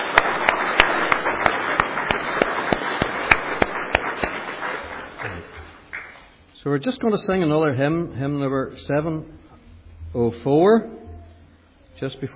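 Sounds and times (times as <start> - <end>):
audience applause: 0.0 - 6.3
speech: 6.6 - 9.4, 10.1 - 11.0, 12.0 - 12.3.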